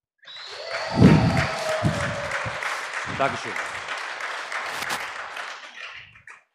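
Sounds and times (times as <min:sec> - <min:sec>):
audience applause: 0:00.2 - 0:06.5
speech: 0:03.2 - 0:03.7.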